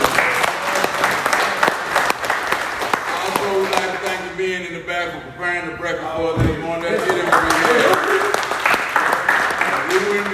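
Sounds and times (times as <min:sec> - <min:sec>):
audience clapping to welcome a guest at a morning breakfast gathering: 0:00.0 - 0:04.2, 0:06.8 - 0:10.3
speech: 0:05.0 - 0:08.2.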